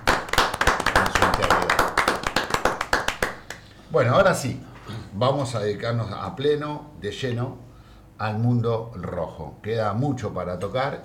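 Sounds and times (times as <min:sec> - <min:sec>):
audience applause: 0:00.0 - 0:03.6
speech: 0:03.9 - 0:11.0.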